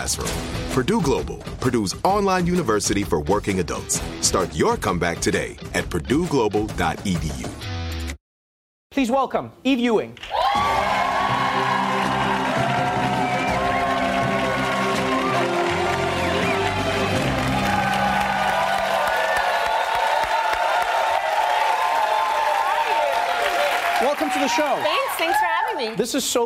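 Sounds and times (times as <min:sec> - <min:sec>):
speech: 0:00.0 - 0:07.8, 0:09.0 - 0:11.0, 0:24.3 - 0:26.4
scattered applause: 0:10.2 - 0:26.0
studio audience cheering and whooping: 0:10.2 - 0:26.0.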